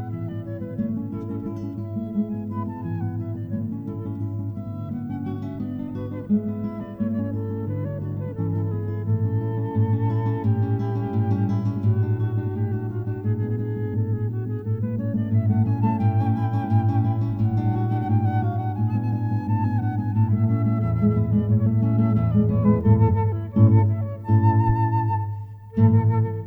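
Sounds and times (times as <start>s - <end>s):
flute: 0.0s - 26.4s
guitar: 0.0s - 26.4s.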